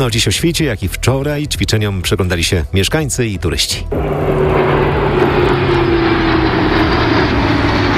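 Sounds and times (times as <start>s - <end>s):
speech: 0.0s - 4.5s
military fighter jets flying overhead: 3.9s - 7.9s.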